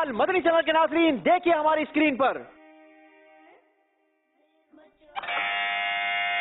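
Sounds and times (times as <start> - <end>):
speech: 0.1 - 2.5
quiz contestant electronic buzzer: 5.2 - 6.4.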